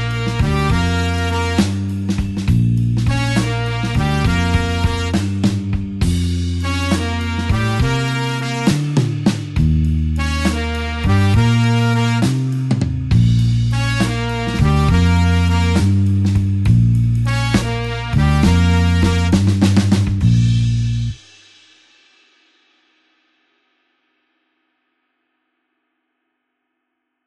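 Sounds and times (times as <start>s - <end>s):
slow blues horns in Bb: 0.0s - 21.2s.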